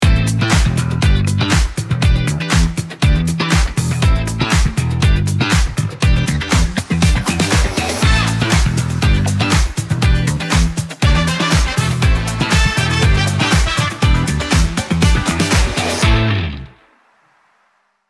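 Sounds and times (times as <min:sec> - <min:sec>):
music: 0:00.0 - 0:16.9.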